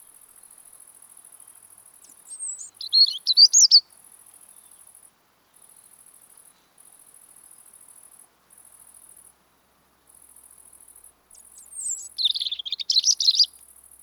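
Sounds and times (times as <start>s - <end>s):
European robin song: 2.1s - 3.9s, 11.4s - 13.6s.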